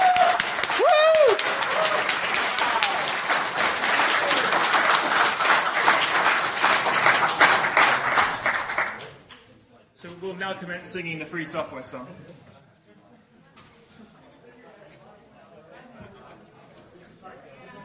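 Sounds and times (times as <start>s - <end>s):
round of applause: 0.0s - 9.2s
speech: 10.5s - 12.4s.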